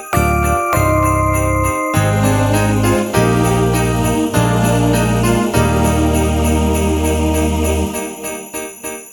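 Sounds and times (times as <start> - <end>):
karaoke singing: 0.1 - 8.8.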